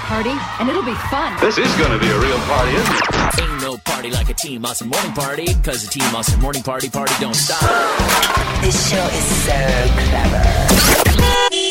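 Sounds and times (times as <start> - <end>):
speech: 0.1 - 11.5
car horn sound effect opening a traffic report: 11.1 - 11.6.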